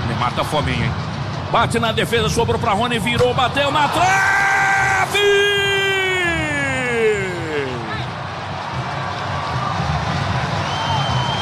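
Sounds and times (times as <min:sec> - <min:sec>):
speech: 0:00.2 - 0:04.3, 0:05.1 - 0:05.5
stadium crowd applauding: 0:03.9 - 0:11.3.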